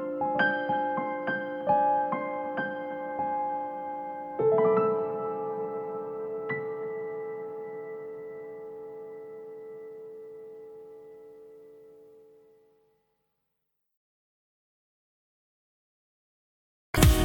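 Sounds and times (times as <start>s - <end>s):
piano: 0.0s - 12.7s, 17.0s - 17.2s.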